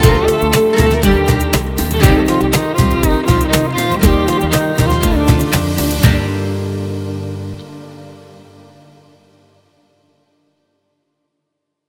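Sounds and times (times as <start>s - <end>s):
violin: 0.0s - 9.0s.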